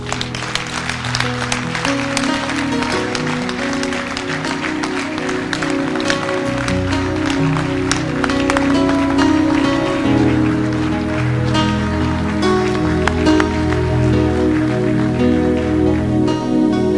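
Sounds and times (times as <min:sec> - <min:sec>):
audience clapping hands during a sermon: 0:00.0 - 0:16.9
loud sustained music: 0:00.0 - 0:16.9.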